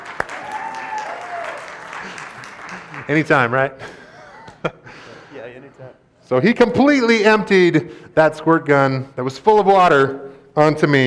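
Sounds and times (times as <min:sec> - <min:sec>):
audience clapping: 0:00.0 - 0:03.7
laughter: 0:01.8 - 0:05.4
speech: 0:03.1 - 0:04.0, 0:06.3 - 0:11.0.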